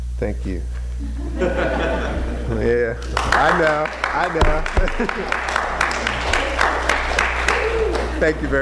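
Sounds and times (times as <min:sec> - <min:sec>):
speech: 0:00.2 - 0:05.6, 0:08.2 - 0:08.6
laughter: 0:01.0 - 0:08.6
audience applause after a poem: 0:02.9 - 0:08.6.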